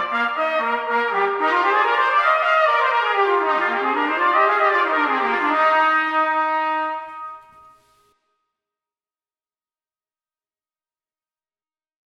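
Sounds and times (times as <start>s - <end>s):
trumpet duet: 0.0s - 8.0s.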